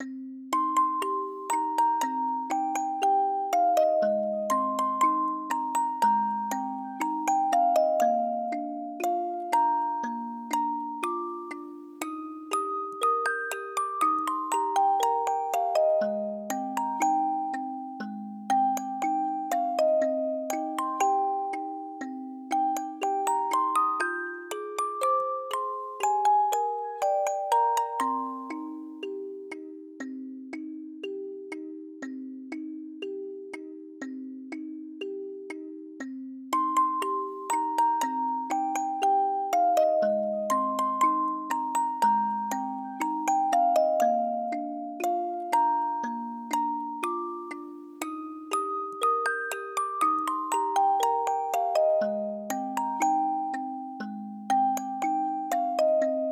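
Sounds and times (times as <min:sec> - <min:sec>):
music box: 0:00.0 - 0:56.3.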